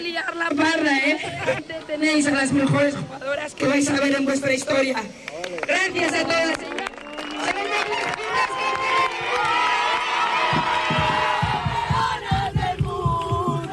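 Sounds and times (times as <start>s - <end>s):
speech: 0.0s - 6.7s
rhythmic clapping or chanting: 5.3s - 13.7s
fans cheering and shouting at reception of Telecable Hockey Club with Intercontinental Cup: 6.0s - 13.7s.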